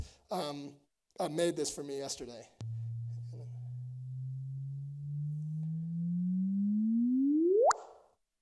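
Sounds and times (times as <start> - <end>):
speech: 0.3 - 2.6
simulated gravitational-wave chirp of two merging compact objects: 2.6 - 8.0.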